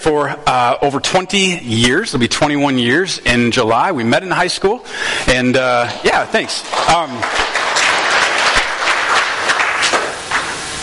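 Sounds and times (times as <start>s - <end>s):
speech: 0.0s - 7.5s
scattered half-hearted audience clapping: 5.6s - 10.8s.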